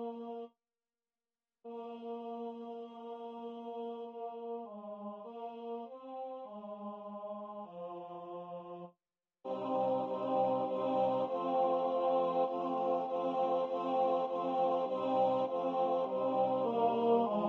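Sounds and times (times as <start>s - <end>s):
tenor singing: 9.5s - 17.4s.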